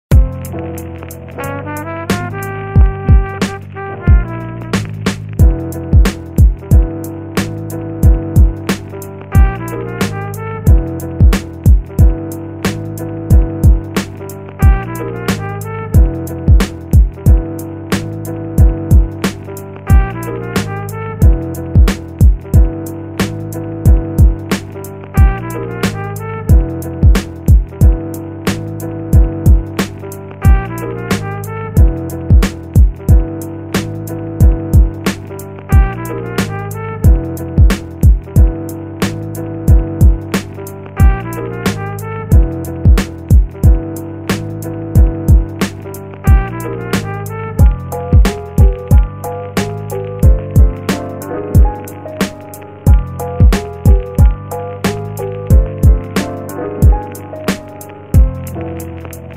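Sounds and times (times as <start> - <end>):
instrumental jazz: 0.1 - 59.3.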